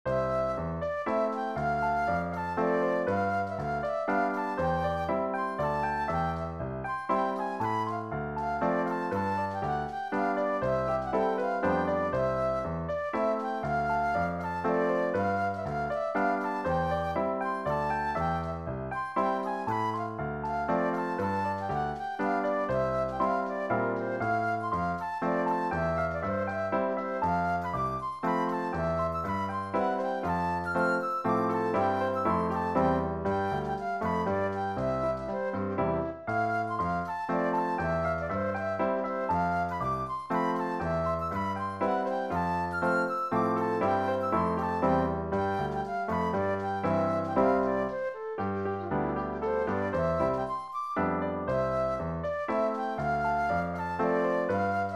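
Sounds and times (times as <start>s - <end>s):
mazurka: 0.1s - 54.9s.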